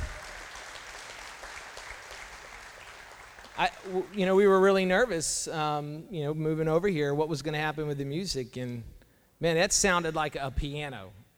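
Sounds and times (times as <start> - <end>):
audience clapping: 0.0 - 4.9
speech: 3.6 - 11.3.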